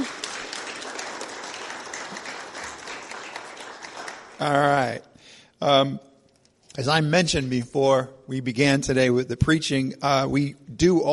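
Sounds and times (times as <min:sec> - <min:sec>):
audience clapping: 0:00.0 - 0:05.0
speech: 0:04.4 - 0:06.1, 0:06.8 - 0:11.1.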